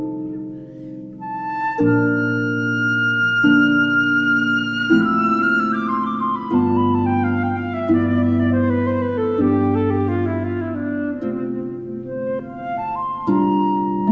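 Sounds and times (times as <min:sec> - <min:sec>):
flute: 0:00.0 - 0:14.0
harp: 0:00.0 - 0:14.0.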